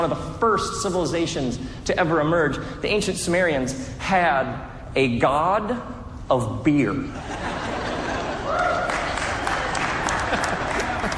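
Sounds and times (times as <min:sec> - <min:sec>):
speech: 0:00.0 - 0:07.6
laughter: 0:07.1 - 0:11.1
audience clapping: 0:08.2 - 0:11.1.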